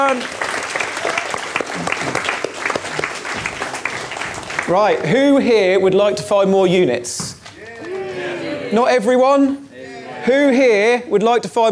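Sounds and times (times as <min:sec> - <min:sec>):
speech: 0:00.0 - 0:00.5, 0:04.7 - 0:07.3, 0:08.7 - 0:09.6, 0:10.3 - 0:11.7
audience applause: 0:00.0 - 0:05.1.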